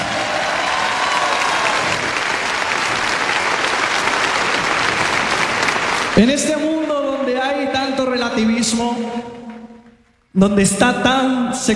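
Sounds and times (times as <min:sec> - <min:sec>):
applause: 0:00.0 - 0:07.6
speech: 0:06.2 - 0:06.8, 0:08.0 - 0:09.3, 0:10.4 - 0:11.7.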